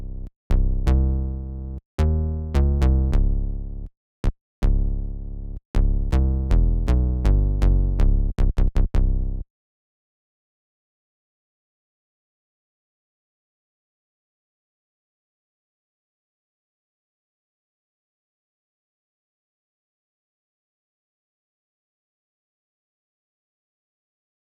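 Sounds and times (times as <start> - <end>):
bass: 0.0 - 9.5.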